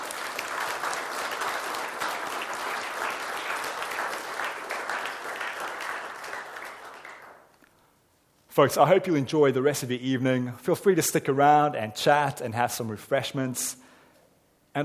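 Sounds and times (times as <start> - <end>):
round of applause: 0.0 - 7.5
speech: 8.6 - 13.9.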